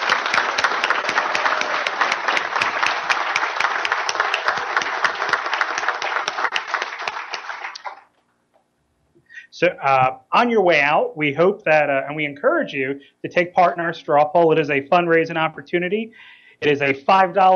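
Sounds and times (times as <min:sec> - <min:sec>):
audience applause: 0:00.0 - 0:08.1
speech: 0:09.6 - 0:17.5.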